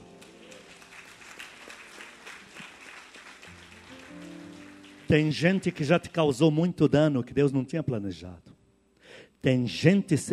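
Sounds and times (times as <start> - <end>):
crowd applauding: 0.0 - 6.2
speech: 5.1 - 8.5, 9.4 - 10.3.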